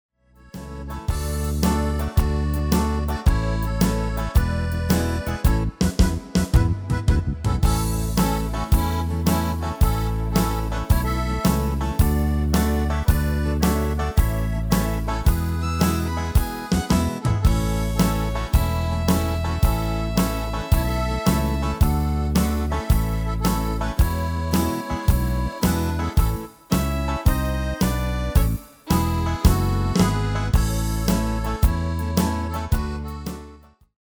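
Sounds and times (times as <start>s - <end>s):
MIDI music: 0.4s - 33.7s.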